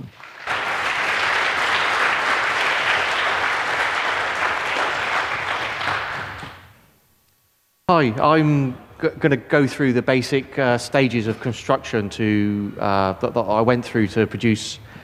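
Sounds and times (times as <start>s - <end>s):
audience applause: 0.0s - 6.8s
speech: 7.9s - 14.9s.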